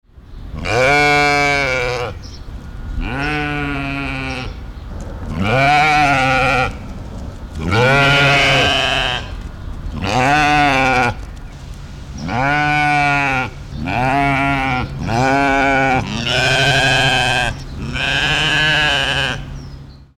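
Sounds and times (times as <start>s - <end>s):
mouflon bleating: 0.6s - 2.2s, 3.0s - 4.6s, 5.2s - 6.8s, 7.6s - 11.2s, 12.2s - 19.5s.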